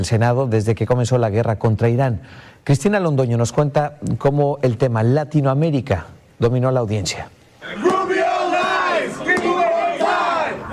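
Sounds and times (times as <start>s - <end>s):
speech: 0.0s - 7.9s
protesters shouting in a Senate hearing room: 7.6s - 10.7s.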